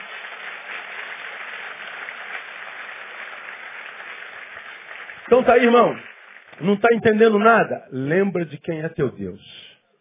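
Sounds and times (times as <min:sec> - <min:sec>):
audience applause: 0:00.0 - 0:07.2
speech: 0:05.3 - 0:09.6.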